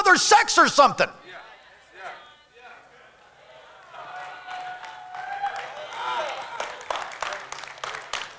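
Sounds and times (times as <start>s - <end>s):
speech: 0.1s - 1.2s
golf clap: 3.8s - 8.3s.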